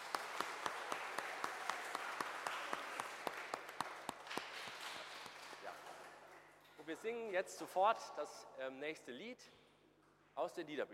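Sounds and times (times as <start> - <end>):
audience clapping: 0.0 - 6.3
speech: 6.9 - 9.6, 10.4 - 10.9.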